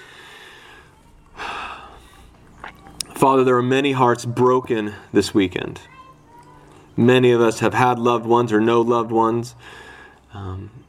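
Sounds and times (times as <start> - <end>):
deep breath drawn in during a prayer at a church service: 0.0 - 2.3, 9.6 - 10.2
hiss: 0.0 - 10.8
speech: 3.2 - 5.9, 7.0 - 10.8.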